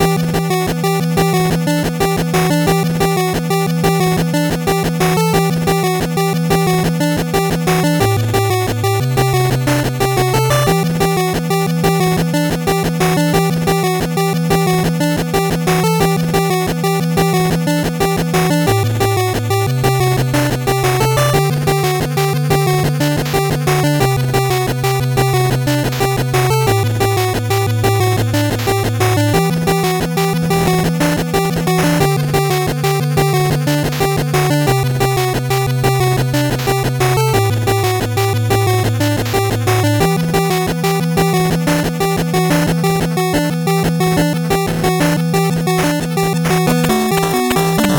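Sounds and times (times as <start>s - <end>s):
8-bit background music: 0.0s - 47.9s.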